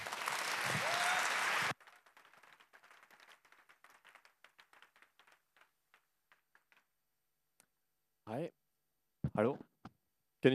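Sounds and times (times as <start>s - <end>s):
audience applause: 0.0s - 6.9s
speech: 9.4s - 9.6s.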